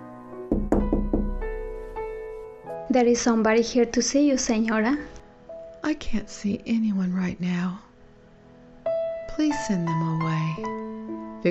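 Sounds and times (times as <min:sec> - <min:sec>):
knocking on a bedroom door: 0:00.5 - 0:01.9
speech: 0:02.9 - 0:05.1, 0:05.8 - 0:07.9, 0:09.3 - 0:11.4.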